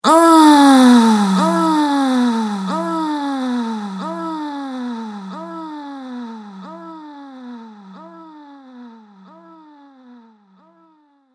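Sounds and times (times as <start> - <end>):
woman groaning during sex with delay effect: 0.0 - 9.0.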